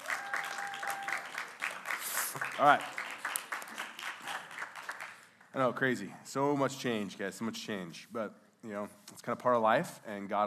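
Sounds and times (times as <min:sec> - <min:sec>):
audience clapping: 0:00.0 - 0:05.7
speech: 0:02.3 - 0:03.0, 0:05.5 - 0:10.4.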